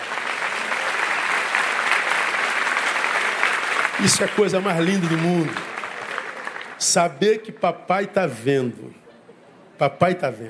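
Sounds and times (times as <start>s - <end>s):
loud audience applause: 0.0s - 7.2s
speech: 4.0s - 5.7s, 6.8s - 9.0s, 9.8s - 10.4s.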